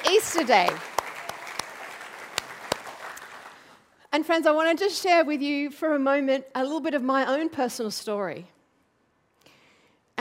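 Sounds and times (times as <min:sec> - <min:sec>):
audience applause: 0:00.0 - 0:03.7
speech: 0:00.2 - 0:00.9, 0:04.2 - 0:08.5.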